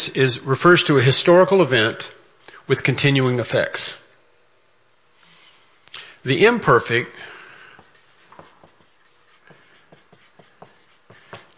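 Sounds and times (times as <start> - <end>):
speech: 0.0 - 4.0, 6.2 - 7.3
chalk or marker drawing on a board: 6.7 - 11.5.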